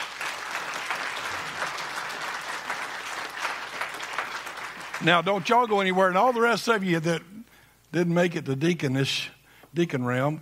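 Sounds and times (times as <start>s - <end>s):
audience applause: 0.0s - 6.0s
speech: 5.0s - 7.3s, 7.9s - 10.4s.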